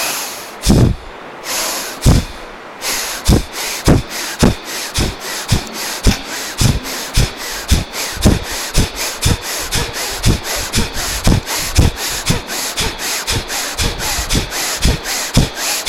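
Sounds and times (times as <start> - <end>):
forceful rhythmic breaths during Sufi dhikr meditation: 0.0 - 15.8.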